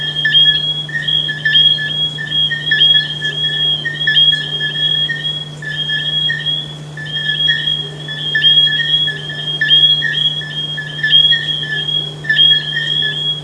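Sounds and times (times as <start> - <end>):
frogs calling in a dense chorus of high shrill notes: 0.0 - 13.4.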